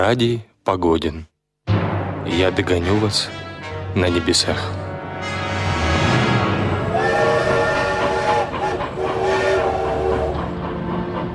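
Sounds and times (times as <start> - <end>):
speech: 0.0 - 1.3, 2.2 - 5.3
train rumbling past: 5.3 - 11.3
steam whistle: 6.7 - 10.7.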